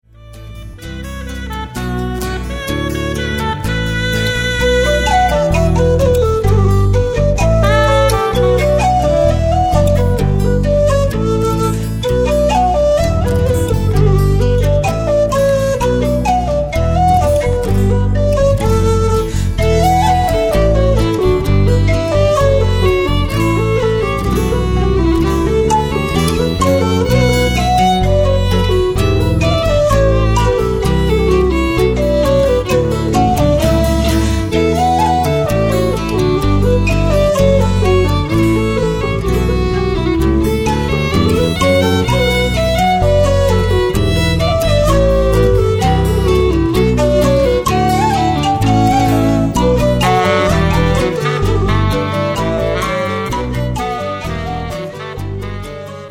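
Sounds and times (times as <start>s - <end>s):
slow reel tunes: 0.2s - 56.0s.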